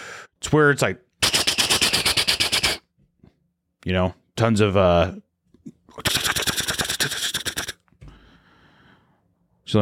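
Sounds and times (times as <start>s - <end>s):
speech: 0.5s - 1.1s, 3.8s - 6.3s
voice beatboxing a blast beat drum pattern: 1.2s - 2.9s, 5.9s - 7.9s.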